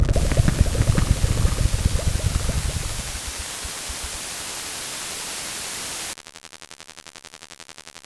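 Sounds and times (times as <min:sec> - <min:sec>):
noise: 0:00.1 - 0:06.1.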